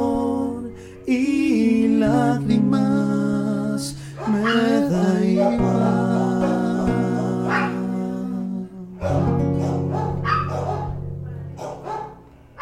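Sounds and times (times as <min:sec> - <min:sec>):
sustained musical background: 0:00.0 - 0:12.5
speech: 0:01.1 - 0:01.4
small dogs barking and yipping: 0:04.2 - 0:05.9, 0:06.9 - 0:07.9, 0:09.0 - 0:12.5.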